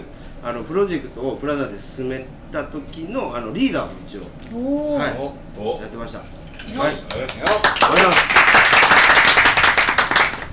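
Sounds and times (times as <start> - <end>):
speech: 0.4 - 8.6
hands clapping: 7.1 - 10.5.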